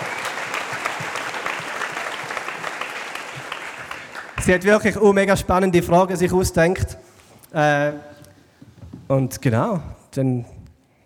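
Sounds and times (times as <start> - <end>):
audience applause: 0.0 - 4.8
speech: 4.4 - 8.1, 9.1 - 10.5.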